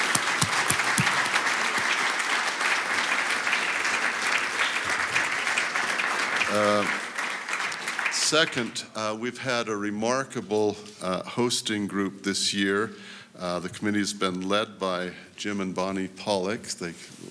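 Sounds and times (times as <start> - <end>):
crowd applause: 0.0 - 8.8
speech: 6.5 - 7.0, 8.3 - 17.2.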